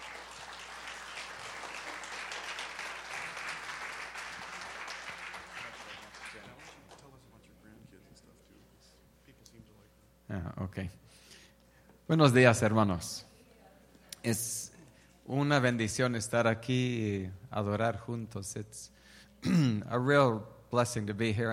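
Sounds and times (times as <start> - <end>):
audience applause: 0.0 - 7.1
speech: 10.4 - 11.2, 12.1 - 13.3, 14.2 - 14.6, 15.3 - 21.5.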